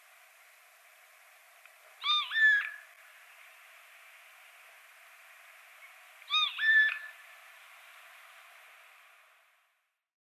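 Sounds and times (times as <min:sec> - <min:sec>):
Eurasian jay Garrulus glandarius giving a nasal mewing two-part call: 0:02.0 - 0:02.9, 0:06.3 - 0:07.2.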